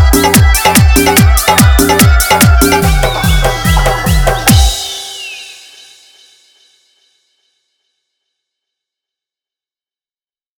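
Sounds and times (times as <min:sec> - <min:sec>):
Hindi love song hard bass remix: 0:00.0 - 0:05.6.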